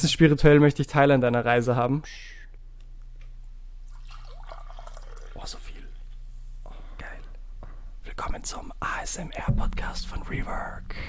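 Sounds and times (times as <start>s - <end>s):
speech: 0.0s - 2.4s, 5.4s - 5.6s, 8.2s - 11.0s
green tea being poured into a cup: 3.9s - 5.7s.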